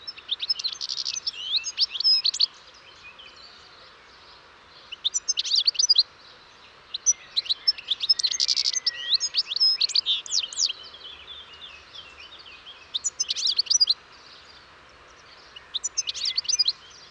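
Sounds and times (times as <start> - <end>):
European goldfinch Carduelis carduelis calling: 0.1 - 2.5, 4.9 - 6.0, 7.0 - 10.8, 12.9 - 14.0, 15.4 - 16.8.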